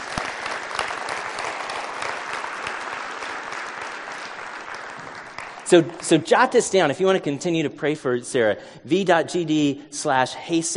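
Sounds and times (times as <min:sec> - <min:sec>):
audience clapping: 0:00.0 - 0:07.1
speech: 0:05.7 - 0:10.7.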